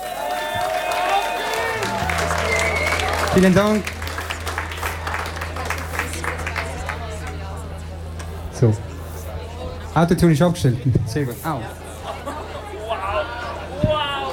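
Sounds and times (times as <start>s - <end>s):
audience applause: 0.0s - 7.6s
speech: 3.4s - 4.0s, 8.6s - 8.9s, 10.0s - 11.8s.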